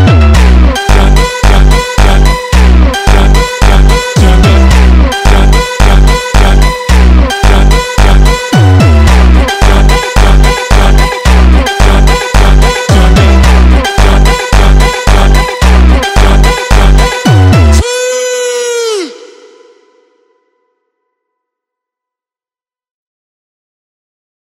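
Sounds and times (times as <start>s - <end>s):
funk music: 0.0s - 18.0s.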